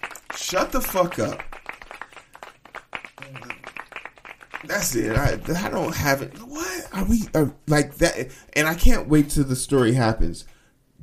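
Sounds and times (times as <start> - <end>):
hand claps: 0.0 - 7.5
speech: 0.5 - 1.5, 4.6 - 10.5.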